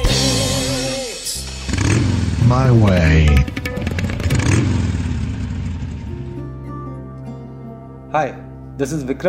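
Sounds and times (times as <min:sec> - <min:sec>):
motorcycle engine roaring during a ride from Delhi to Jaipur: 0:00.2 - 0:06.4
speech: 0:02.5 - 0:03.5, 0:08.1 - 0:09.2.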